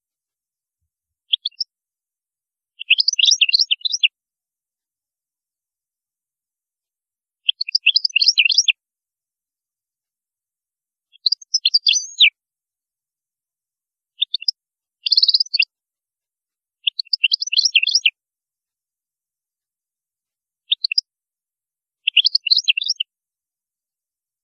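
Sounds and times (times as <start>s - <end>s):
European goldfinch singing: 2.8s - 4.1s, 7.5s - 8.7s, 11.2s - 12.3s, 15.1s - 15.6s, 16.9s - 18.1s, 22.1s - 23.0s.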